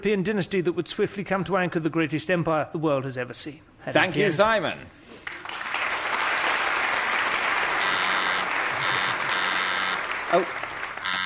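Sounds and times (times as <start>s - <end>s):
speech: 0.0s - 5.4s, 10.3s - 10.6s
steady loud applause: 5.2s - 11.2s
quiz buzzer: 7.8s - 10.1s, 11.0s - 11.2s.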